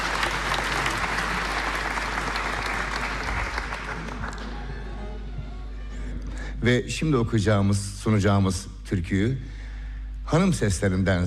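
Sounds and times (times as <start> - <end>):
audience applause at a Turkish folk music concert: 0.0 - 5.1
speech: 6.6 - 9.6, 10.3 - 11.2.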